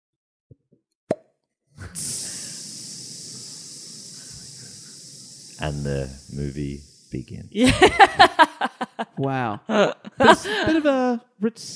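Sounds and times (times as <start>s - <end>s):
voice imitating a snake biting a bike tire: 1.8s - 7.5s
speech: 5.6s - 8.5s, 9.2s - 11.7s
laughter: 7.6s - 10.9s.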